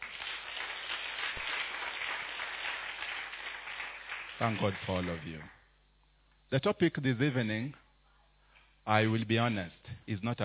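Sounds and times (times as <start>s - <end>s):
audience clapping: 0.0s - 5.6s
speech: 4.4s - 5.6s, 6.5s - 7.8s, 8.8s - 10.4s.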